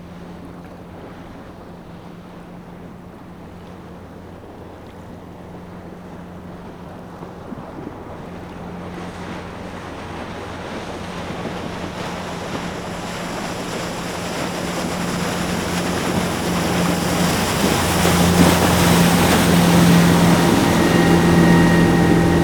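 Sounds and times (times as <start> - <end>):
fishing boat passing by outdoors: 0.0 - 22.4.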